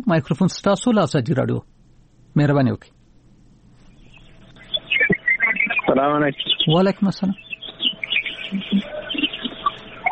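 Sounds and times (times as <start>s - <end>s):
speech: 0.0s - 1.7s, 2.3s - 3.0s, 6.0s - 7.4s, 8.5s - 8.9s
birds chirping behind a radio caller: 3.8s - 10.1s.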